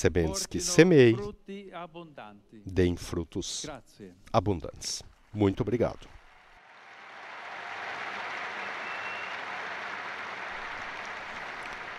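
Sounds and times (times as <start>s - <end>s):
speech: 0.0s - 6.2s
crowd applause: 6.6s - 11.9s.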